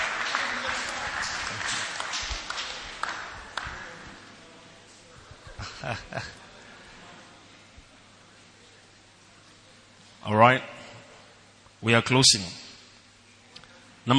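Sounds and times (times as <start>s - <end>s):
laughter: 0.0s - 4.2s, 4.9s - 7.1s
audience clapping: 0.0s - 4.4s
speech: 5.9s - 6.4s, 10.3s - 10.7s, 11.8s - 12.6s.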